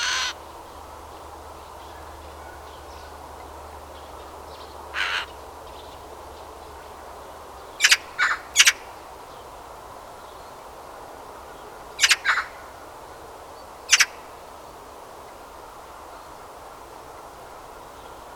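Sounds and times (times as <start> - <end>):
Eurasian magpie Pica pica giving harsh grating calls: 0.0 - 0.4, 4.9 - 5.3, 7.8 - 8.8, 12.0 - 12.6, 13.9 - 14.2.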